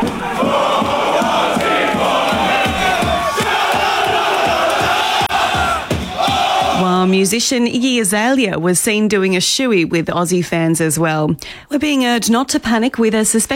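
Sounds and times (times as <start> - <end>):
crowd of fans cheering and chanting inside a store: 0.0 - 7.4
rhythmic pulsing beat: 0.0 - 7.5
speech: 7.1 - 13.5.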